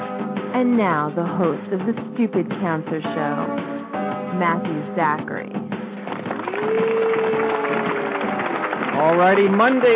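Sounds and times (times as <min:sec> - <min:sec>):
speech: 0:00.6 - 0:03.7, 0:04.4 - 0:05.7, 0:09.0 - 0:09.9
live audience applause: 0:06.0 - 0:09.9.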